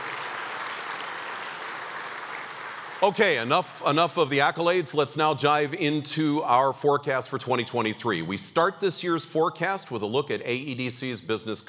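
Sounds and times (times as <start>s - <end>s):
audience applause: 0.0s - 3.8s
speech: 3.0s - 11.6s.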